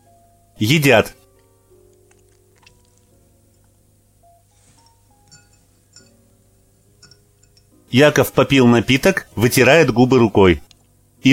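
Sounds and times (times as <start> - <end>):
speech: 0.6 - 1.2, 7.9 - 11.3
glasses clinking in a toast at a celebratory gathering: 4.6 - 6.3, 6.9 - 7.7.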